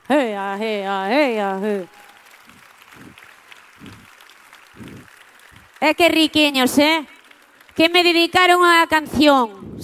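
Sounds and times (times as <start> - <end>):
speech: 0.1 - 2.0, 5.8 - 7.1, 7.8 - 9.8
audience applause: 0.8 - 8.7.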